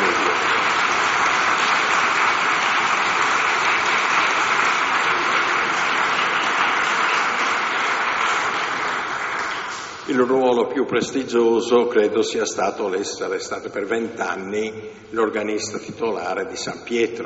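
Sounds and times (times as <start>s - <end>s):
audience applause: 0.0s - 10.1s
speech: 10.2s - 17.2s.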